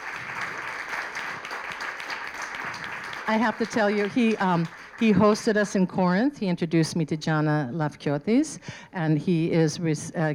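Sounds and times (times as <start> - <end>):
audience applause at a wine dinner welcoming a guest winemaker: 0.0 - 5.4
speech: 3.3 - 10.3.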